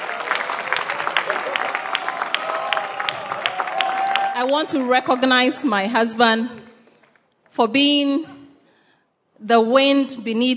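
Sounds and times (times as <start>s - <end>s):
applause: 0.0s - 5.6s, 6.8s - 7.6s
speech: 4.4s - 6.6s, 7.6s - 8.3s, 9.4s - 10.5s.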